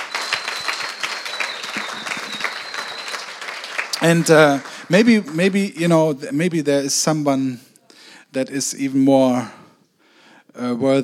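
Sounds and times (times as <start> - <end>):
audience applause: 0.0 - 5.7
speech: 4.0 - 7.7, 8.4 - 9.6, 10.6 - 11.0.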